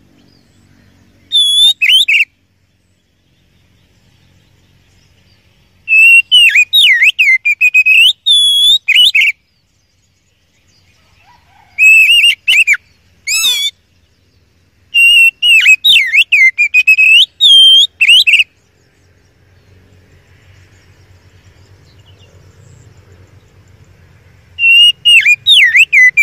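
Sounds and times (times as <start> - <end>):
Oriental magpie-robin song: 0.2 - 2.4, 5.8 - 9.8, 11.6 - 13.9, 14.9 - 18.6, 24.6 - 26.2.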